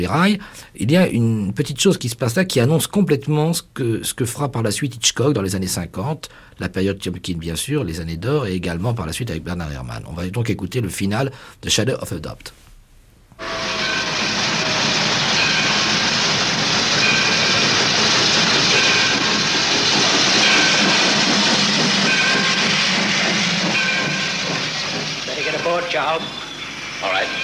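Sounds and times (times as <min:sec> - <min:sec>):
speech: 0:00.0 - 0:12.7
faint rhythmic train clatter: 0:13.4 - 0:27.4
train at a station hissing and rumbling: 0:13.4 - 0:27.4.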